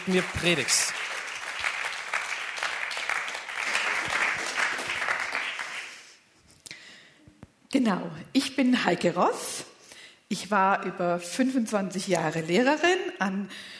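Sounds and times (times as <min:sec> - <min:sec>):
speech: 0:00.0 - 0:01.0, 0:07.8 - 0:09.7, 0:10.3 - 0:13.7
scattered claps: 0:00.0 - 0:06.0
audience applause: 0:00.0 - 0:06.2.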